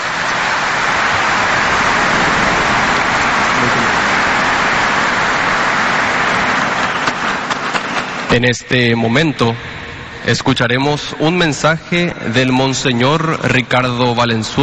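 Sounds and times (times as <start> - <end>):
audience applause: 0.0 - 8.3
speech: 8.3 - 14.6.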